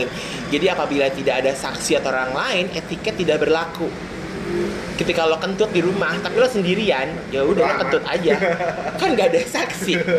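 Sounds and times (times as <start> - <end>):
speech: 0.0 - 10.1
street traffic noise: 0.0 - 10.1
car engine revving with rising whine: 3.8 - 6.8
laughter: 7.6 - 10.1.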